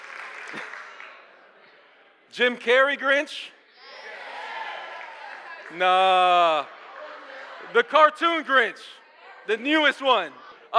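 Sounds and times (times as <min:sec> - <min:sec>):
audience clapping: 0:00.0 - 0:01.3, 0:05.0 - 0:06.4
speech: 0:02.4 - 0:03.6, 0:05.7 - 0:06.8, 0:07.6 - 0:10.7.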